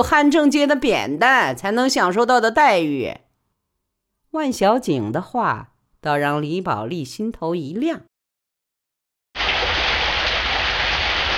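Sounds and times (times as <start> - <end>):
speech: 0.0 - 3.2, 4.3 - 8.1
heavy rain pattering on a shed roof: 9.4 - 11.3.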